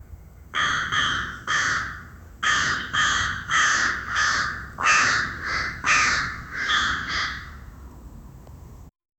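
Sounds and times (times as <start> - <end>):
crow vocalization: 0.6 - 7.7.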